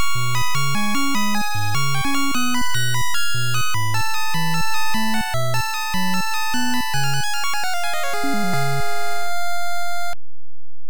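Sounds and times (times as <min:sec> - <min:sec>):
game over jingle: 0:00.2 - 0:10.1.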